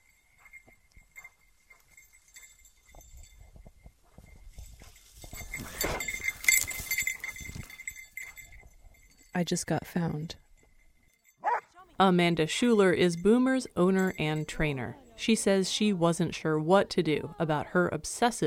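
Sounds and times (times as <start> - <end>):
high-pitched jingling bell: 0.0 - 15.9
rustling: 4.8 - 8.0
speech: 9.4 - 10.4, 12.0 - 18.4
excited dog barking in the distance: 11.4 - 11.8.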